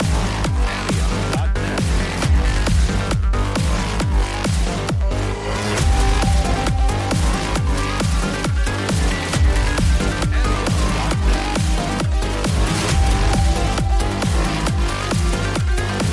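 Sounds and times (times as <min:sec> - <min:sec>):
dark electronic music: 0:00.0 - 0:16.1.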